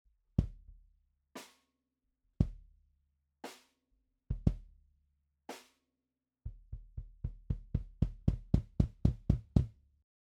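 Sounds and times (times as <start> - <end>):
bass drum: 4.3 - 4.6, 6.5 - 9.7.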